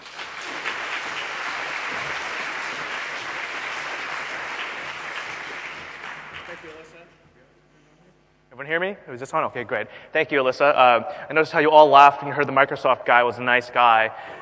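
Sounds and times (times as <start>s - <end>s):
audience applause: 0.0s - 7.0s
speech: 8.6s - 14.3s.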